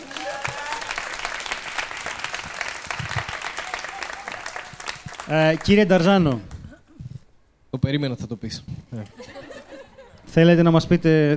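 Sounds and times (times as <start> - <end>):
audience applause: 0.0 - 6.6
speech: 5.3 - 6.5, 7.9 - 9.4, 10.3 - 11.3
laughter: 9.0 - 10.3.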